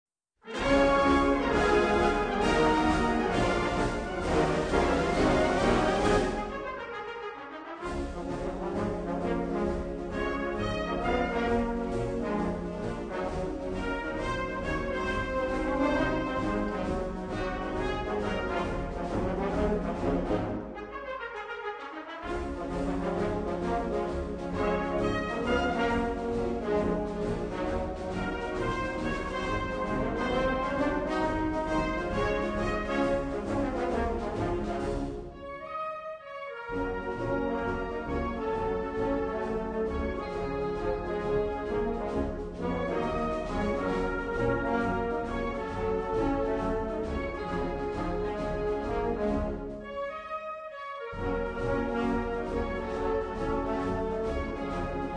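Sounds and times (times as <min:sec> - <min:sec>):
brass music: 0:00.4 - 0:55.1.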